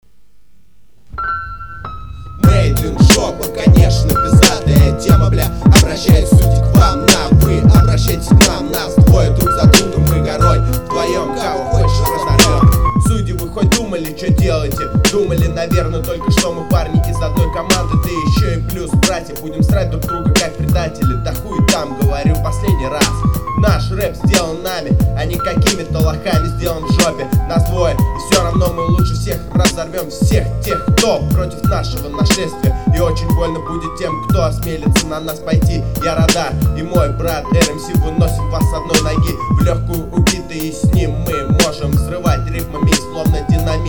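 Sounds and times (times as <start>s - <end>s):
rap music: 2.4s - 43.8s.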